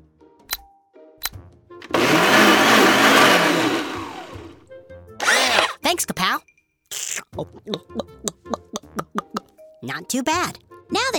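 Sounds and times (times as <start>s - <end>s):
blender clicks: 1.8s - 4.6s
blender making a smoothie of coconut milk, apples, pear, spinach, almond butter, ginger: 1.8s - 4.6s, 5.2s - 5.8s
speech: 5.9s - 8.7s, 9.8s - 11.1s.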